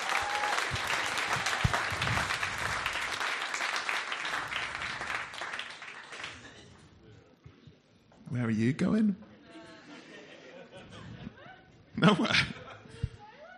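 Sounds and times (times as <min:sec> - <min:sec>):
comedy audience applauding a comedian: 0:00.0 - 0:06.8
speech: 0:08.5 - 0:09.3, 0:12.1 - 0:12.5
laughter: 0:09.4 - 0:13.5.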